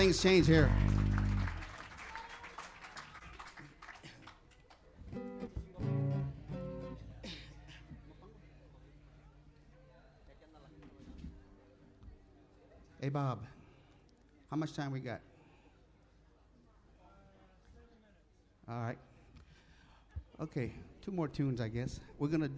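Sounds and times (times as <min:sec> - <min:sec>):
speech: 0:00.0 - 0:01.0, 0:13.1 - 0:13.6, 0:14.5 - 0:15.3, 0:18.7 - 0:19.1, 0:20.4 - 0:22.5
people cheering: 0:00.0 - 0:04.1
audience clapping: 0:00.0 - 0:05.6.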